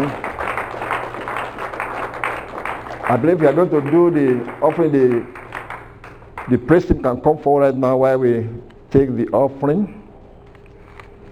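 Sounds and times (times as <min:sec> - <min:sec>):
speech: 0:00.0 - 0:00.2, 0:03.1 - 0:05.4, 0:06.5 - 0:10.0
congregation clapping during a church service: 0:00.0 - 0:08.2.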